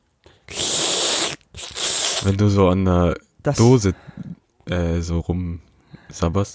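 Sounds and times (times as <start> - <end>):
voice imitating a dental suction tool clearing a wisdom tooth socket: 0.5 - 2.4
speech: 2.2 - 6.5.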